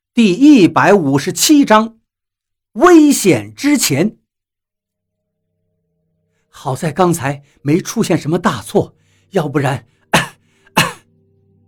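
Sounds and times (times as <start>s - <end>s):
speech: 0.2s - 2.0s, 2.8s - 4.2s, 6.6s - 9.9s
man coughing: 10.1s - 11.1s.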